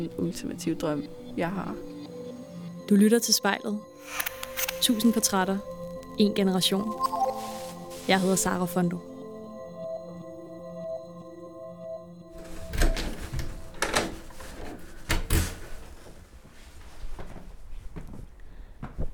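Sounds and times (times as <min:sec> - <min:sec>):
speech: 0:00.0 - 0:01.9, 0:02.9 - 0:07.2, 0:08.0 - 0:09.1
door being locked: 0:12.4 - 0:15.8.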